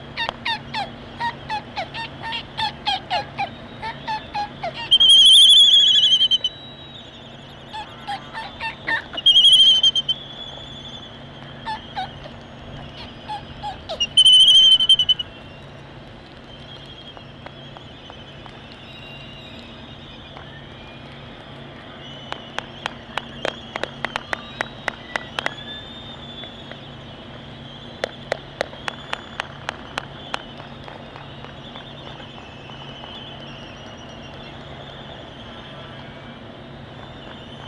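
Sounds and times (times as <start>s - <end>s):
dark-backed albatross calling: 0.2s - 6.7s, 7.4s - 11.0s, 11.6s - 15.4s.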